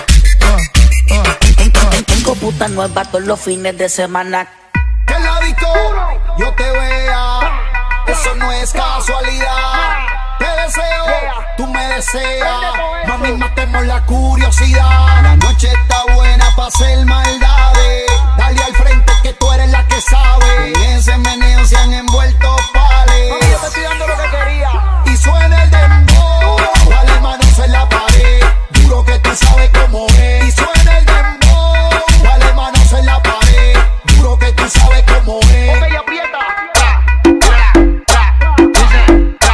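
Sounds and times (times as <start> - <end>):
bass-boosted audio: 0.0 - 39.5.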